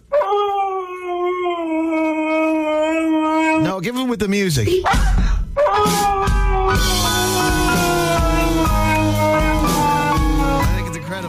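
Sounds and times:
husky dog howling: 0.0s - 3.7s, 5.6s - 10.6s
speech: 3.8s - 6.0s.

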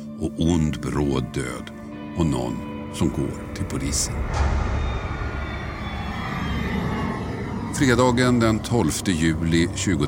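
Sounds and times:
speech: 0.2s - 4.8s, 7.8s - 10.0s
SAS passenger plane SK 1254 jet engine roar landing at Arlanda airport: 3.3s - 10.0s.

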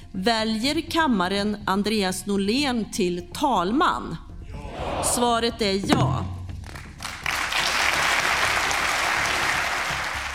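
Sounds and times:
speech: 0.2s - 4.3s, 5.0s - 6.3s
parliament applauding election of speaker: 6.6s - 10.3s.

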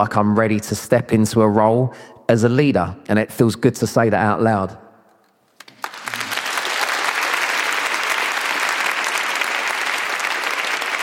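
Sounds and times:
speech: 0.0s - 4.8s
audience clapping: 5.6s - 11.0s.

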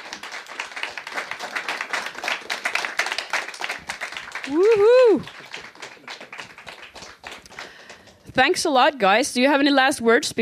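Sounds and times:
applause for the bands: 0.0s - 8.3s
speech: 4.5s - 5.4s, 8.4s - 10.4s.

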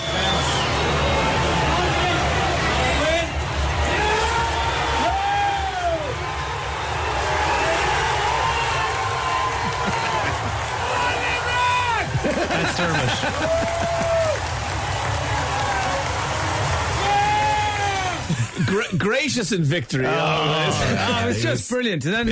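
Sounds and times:
stadium crowd roaring and cheering at the final whistle: 0.0s - 19.0s, 20.0s - 21.6s
shouts and whoops: 3.8s - 6.5s, 7.1s - 14.5s, 15.4s - 18.4s
laughter: 9.3s - 11.2s, 12.0s - 14.4s, 18.0s - 19.2s, 20.5s - 21.5s
speech: 19.4s - 22.3s.

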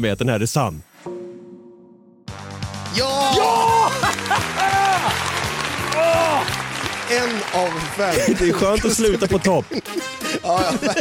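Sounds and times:
speech: 0.0s - 1.1s, 2.9s - 5.3s, 6.0s - 10.9s
cheering: 3.0s - 9.6s
laughter: 3.4s - 6.3s, 7.2s - 10.9s
applause: 3.7s - 10.5s.

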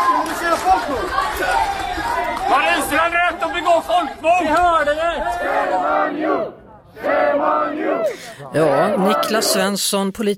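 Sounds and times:
protesters shouting at politicians: 0.0s - 9.7s
speech: 3.7s - 10.3s.

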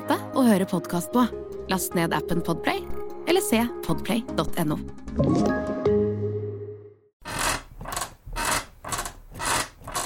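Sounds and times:
speech: 0.1s - 5.7s
creaking bed: 7.2s - 10.0s.

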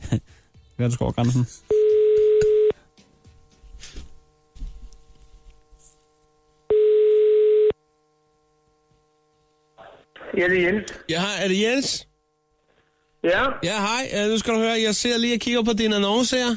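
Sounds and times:
speech: 0.8s - 1.8s, 10.4s - 12.1s, 13.2s - 16.5s
telephone ringing tone heard down the line: 1.7s - 2.8s, 6.7s - 7.8s.

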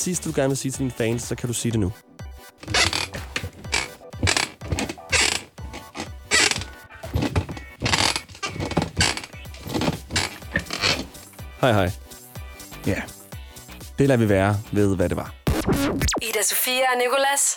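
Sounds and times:
speech: 0.0s - 2.9s, 11.6s - 12.0s, 12.8s - 13.2s, 14.0s - 17.5s
chair creaking: 2.6s - 11.5s.

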